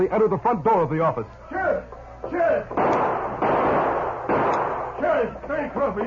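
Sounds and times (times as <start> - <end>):
speech: 0.0 - 3.2, 5.1 - 6.0
gunshots fired from pistols: 2.7 - 6.0.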